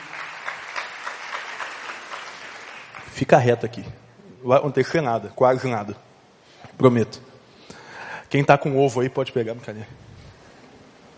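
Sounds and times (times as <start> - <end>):
audience applauding: 0.0 - 3.6
speech: 3.2 - 6.1, 6.7 - 7.3, 8.3 - 10.0.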